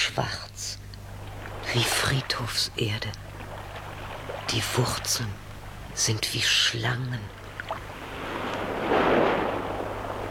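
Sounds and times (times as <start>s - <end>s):
speech: 0.2s - 0.4s, 1.7s - 3.2s, 4.5s - 5.4s, 6.0s - 7.4s
sea waves breaking on rocks: 7.8s - 10.2s.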